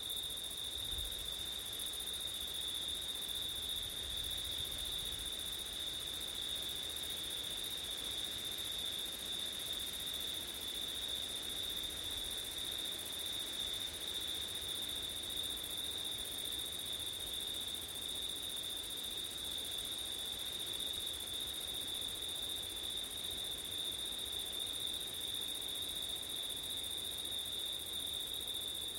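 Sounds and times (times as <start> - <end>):
crickets chirring in a dense chorus: 0.0 - 28.9.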